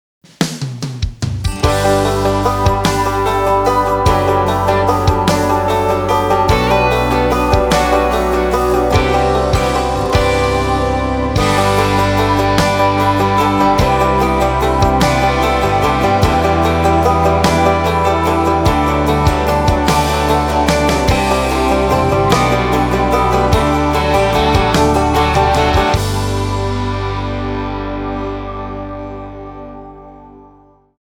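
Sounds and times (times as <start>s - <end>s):
instrumental music: 1.2s - 31.0s.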